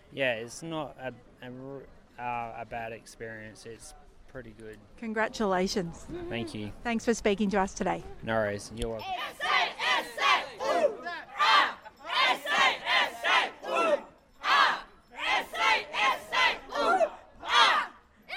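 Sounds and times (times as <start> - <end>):
speech: 0.1 - 9.7
South Australia team supporters chanting and shouting at the bowling: 9.0 - 18.3.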